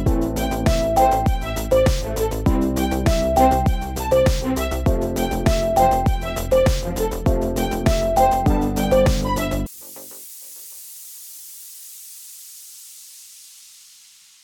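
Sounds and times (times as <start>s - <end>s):
electro music: 0.0s - 10.1s.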